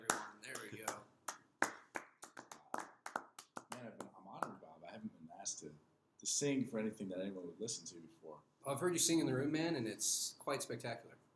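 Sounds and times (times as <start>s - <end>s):
small group audience clapping: 0.0s - 4.6s
speech: 6.3s - 11.2s.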